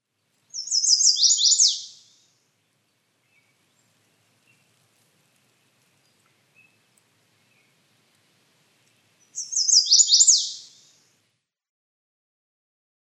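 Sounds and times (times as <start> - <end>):
hairy woodpecker calls: 0.6 - 2.2, 9.3 - 11.0.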